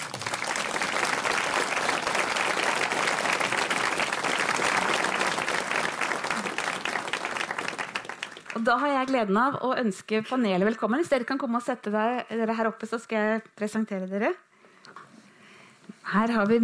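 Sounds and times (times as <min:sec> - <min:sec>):
audience applause: 0:00.0 - 0:08.9
speech: 0:08.7 - 0:14.4, 0:16.1 - 0:16.6.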